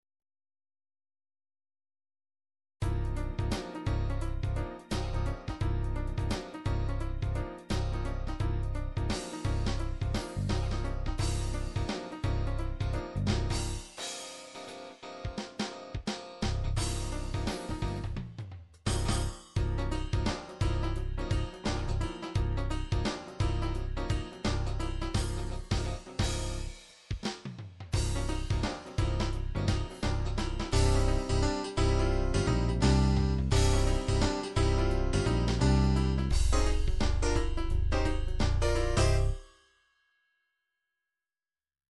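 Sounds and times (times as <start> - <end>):
1980s rock music: 2.8 - 18.3, 18.9 - 26.9, 28.0 - 39.4.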